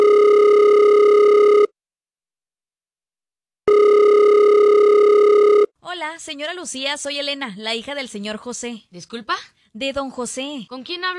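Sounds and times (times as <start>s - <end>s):
phone call ringing on a cell phone: 0.0s - 1.7s, 3.7s - 5.7s
speech: 6.2s - 11.1s.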